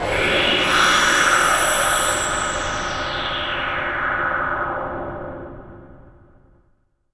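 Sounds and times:
noise: 0.0s - 6.8s.

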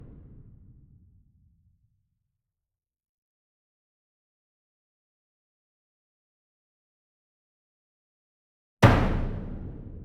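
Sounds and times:
66 inch bass drum hit hard with medium beater: 8.8s - 10.0s.

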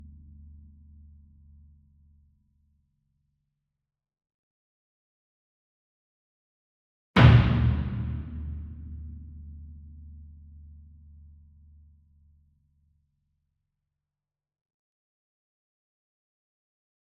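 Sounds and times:
40 inch concert bass drum hit hard with beater: 7.2s - 9.3s.

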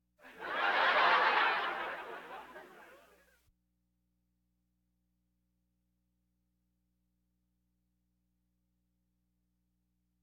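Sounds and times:
audience laughter: 0.2s - 3.3s.

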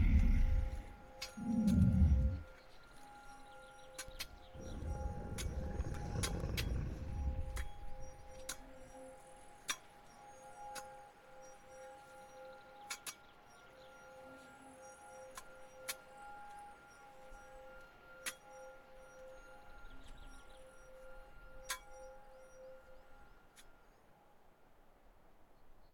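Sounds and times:
ambience at Cristallo gargoyles: 0.0s - 23.7s.

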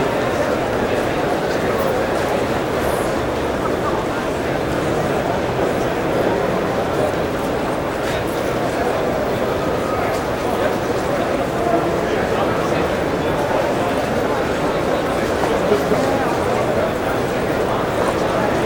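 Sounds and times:
crowd walla in a large convention exhibition hall: 0.0s - 18.6s.

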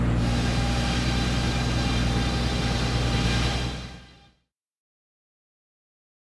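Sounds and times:
windmill in operation: 0.2s - 4.2s.

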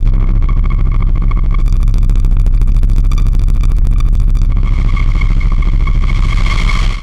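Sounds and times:
static: 0.0s - 7.0s.

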